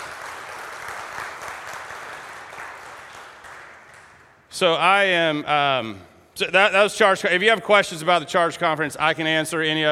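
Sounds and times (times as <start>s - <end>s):
audience applause: 0.0s - 4.3s
speech: 4.6s - 9.8s.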